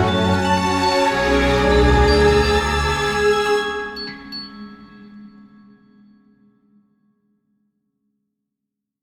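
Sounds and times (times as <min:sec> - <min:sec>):
strings in cinematic fairy tale trailer music: 0:00.0 - 0:04.9
celesta in cinematic fairy tale trailer music: 0:00.0 - 0:06.6.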